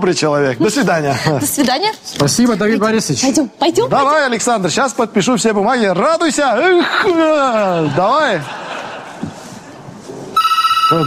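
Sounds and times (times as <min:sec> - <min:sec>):
speech: 0:00.0 - 0:08.6
laughter: 0:06.6 - 0:09.9
telephone ringing with a bright warbling electronic ring: 0:10.4 - 0:11.0.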